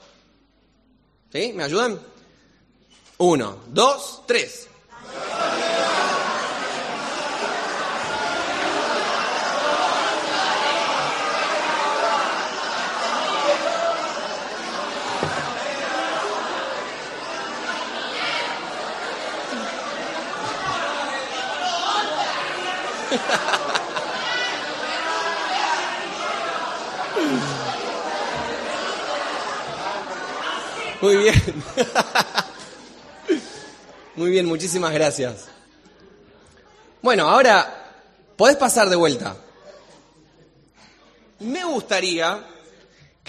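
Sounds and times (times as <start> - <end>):
speech: 1.3 - 2.1, 3.2 - 5.2, 23.2 - 23.6, 31.0 - 32.4, 34.2 - 35.5, 37.0 - 37.8, 38.4 - 39.4, 41.4 - 42.5
crowd of many voices shouting words: 5.0 - 31.1
people chuckling: 5.0 - 33.9.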